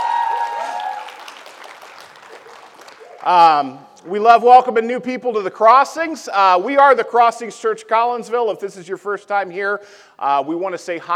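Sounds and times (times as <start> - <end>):
church congregation applause welcoming a new member: 0.0 - 3.6
speech: 3.2 - 11.1.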